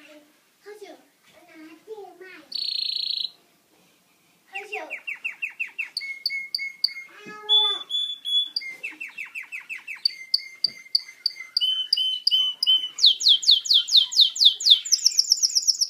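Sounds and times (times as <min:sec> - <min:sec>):
canary singing: 0:02.4 - 0:03.4, 0:04.5 - 0:15.8.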